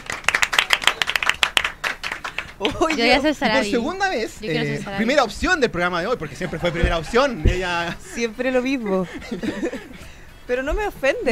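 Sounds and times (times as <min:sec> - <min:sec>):
audience applause: 0:00.0 - 0:03.0
speech: 0:02.6 - 0:11.3
laughter: 0:06.1 - 0:10.4.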